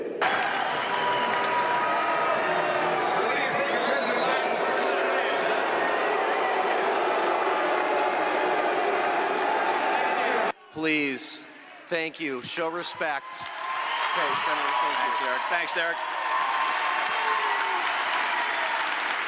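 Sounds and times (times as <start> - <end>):
convention delegates loudly booing: 0.2 - 10.8, 13.2 - 19.2
speech: 10.8 - 11.3, 11.9 - 16.1.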